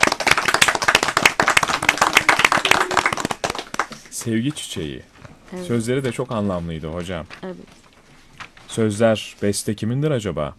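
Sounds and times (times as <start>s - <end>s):
audience clapping: 0.0s - 5.0s
speech: 4.2s - 7.8s, 8.8s - 10.5s.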